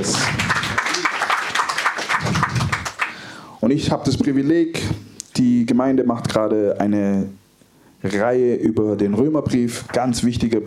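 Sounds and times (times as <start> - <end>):
church congregation clapping for a visiting pastor and his wife: 0.0 - 3.3, 9.8 - 10.2
speech: 3.7 - 7.4, 8.0 - 10.6.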